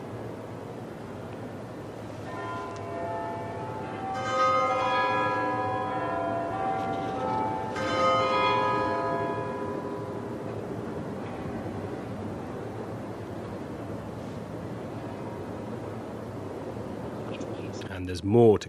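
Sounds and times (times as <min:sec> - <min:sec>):
low steady hum: 0:00.0 - 0:18.6
Big Ben quarter chimes from St Stephen's Tower in Westminster: 0:02.3 - 0:10.4
speech: 0:18.0 - 0:18.6.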